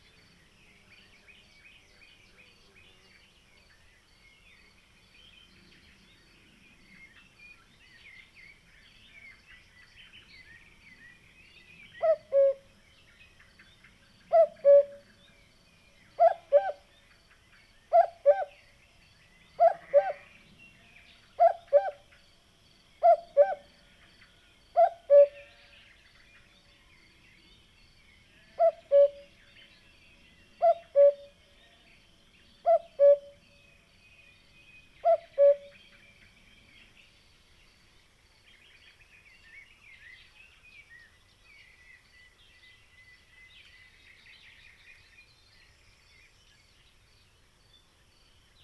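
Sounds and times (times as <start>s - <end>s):
cuckoo calling: 12.0s - 12.6s, 14.3s - 15.1s, 16.2s - 16.8s, 17.9s - 18.5s, 19.6s - 20.2s, 21.4s - 22.0s, 23.0s - 23.7s, 24.8s - 25.5s, 28.6s - 29.3s, 30.6s - 31.4s, 32.6s - 33.4s, 35.0s - 35.8s.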